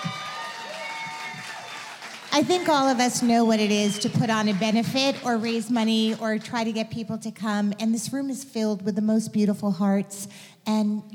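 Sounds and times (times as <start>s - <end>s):
crowd applauding: 0.0s - 6.2s
speech: 2.4s - 11.1s.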